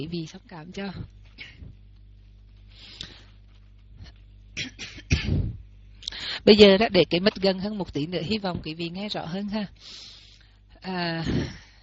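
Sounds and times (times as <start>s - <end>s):
speech: 0.0s - 1.6s, 6.4s - 10.1s, 10.8s - 11.6s
person coughing: 4.6s - 5.6s.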